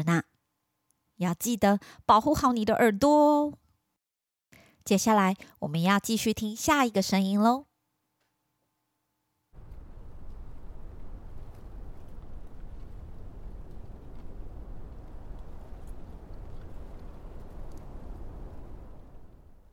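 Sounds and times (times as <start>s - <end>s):
speech: 0.0s - 0.3s, 1.2s - 3.6s, 4.8s - 7.7s
gentle breeze blowing: 9.6s - 19.7s.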